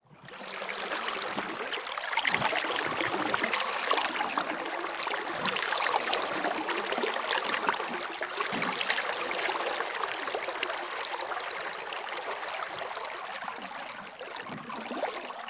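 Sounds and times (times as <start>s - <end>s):
lake water: 0.0s - 15.4s.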